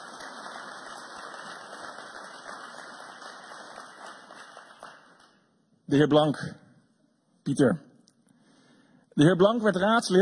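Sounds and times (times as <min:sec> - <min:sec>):
applause: 0:00.0 - 0:05.5
speech: 0:05.9 - 0:06.6, 0:07.4 - 0:07.9, 0:09.2 - 0:10.2.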